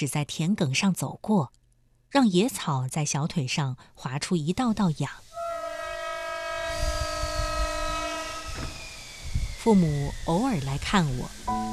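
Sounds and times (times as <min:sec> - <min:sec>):
speech: 0:00.0 - 0:05.2, 0:09.6 - 0:11.6
train horn blaring: 0:05.3 - 0:08.6
heavy rumble and clatter of train passing: 0:05.3 - 0:11.7.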